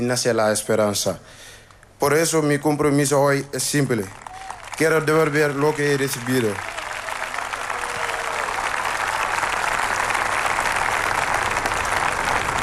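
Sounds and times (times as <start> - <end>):
speech: 0.0 - 6.8
applause after a speech: 3.6 - 12.6.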